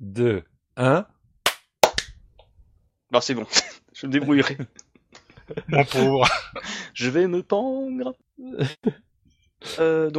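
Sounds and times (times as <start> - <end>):
speech: 0.1 - 1.1, 3.1 - 4.8, 5.5 - 10.1
hand claps for sync: 1.5 - 2.2
laughter: 3.5 - 7.0, 8.5 - 9.0.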